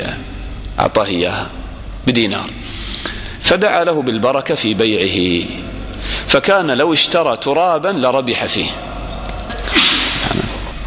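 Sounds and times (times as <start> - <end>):
speech: 0.8 - 5.7, 6.3 - 8.9
sneeze: 9.6 - 10.6.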